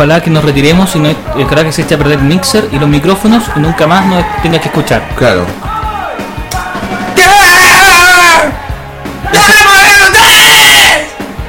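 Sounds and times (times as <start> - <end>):
speech: 0.0 - 5.7, 9.3 - 9.8
loud shouting saturating the microphone: 3.2 - 11.4.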